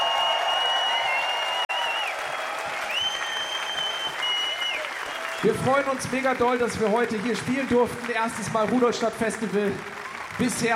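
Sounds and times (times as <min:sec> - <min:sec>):
whistles and cheers: 0:00.0 - 0:06.0
large festival crowd clapping: 0:00.0 - 0:10.7
speech: 0:05.4 - 0:10.7.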